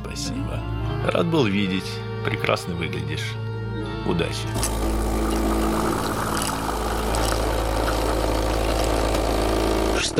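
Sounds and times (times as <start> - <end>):
speech: 0.2 - 5.0
new coffee machine running: 4.6 - 10.1.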